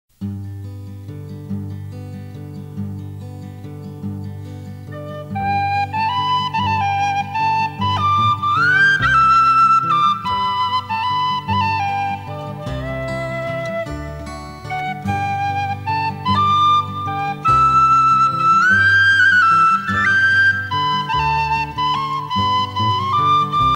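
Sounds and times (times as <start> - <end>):
waltz music: 4.9 - 23.7.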